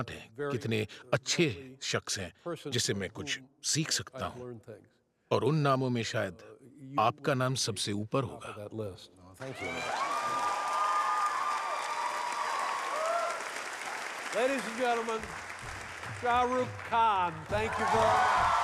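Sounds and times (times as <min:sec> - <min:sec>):
speech: 0:00.0 - 0:10.1, 0:14.3 - 0:18.5
cheering shouts and whoops: 0:09.4 - 0:13.6, 0:17.6 - 0:18.6
audience standing ovation applause: 0:09.4 - 0:18.6.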